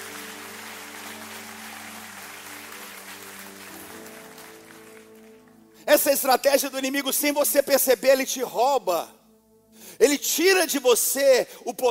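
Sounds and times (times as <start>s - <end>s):
audience applause: 0.0s - 5.7s
speech: 5.8s - 9.2s, 10.3s - 11.8s.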